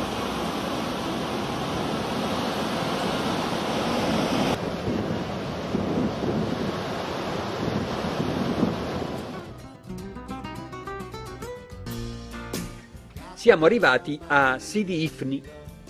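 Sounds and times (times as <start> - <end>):
wind rumble: 0.0 - 9.5
long powerful ocean waves rolling onto the shore at Sidi Ifni: 0.0 - 9.6
tuneful music: 9.4 - 15.8
speech: 13.4 - 15.6.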